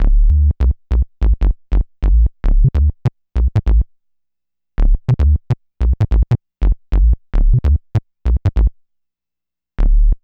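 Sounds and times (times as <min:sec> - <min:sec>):
bass: 0:00.0 - 0:04.0, 0:04.8 - 0:08.8, 0:09.8 - 0:10.2.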